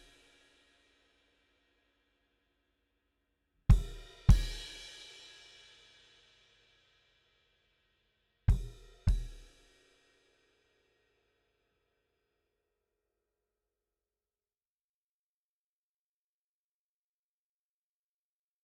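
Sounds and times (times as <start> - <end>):
drum: 3.7 - 4.8, 8.5 - 9.5.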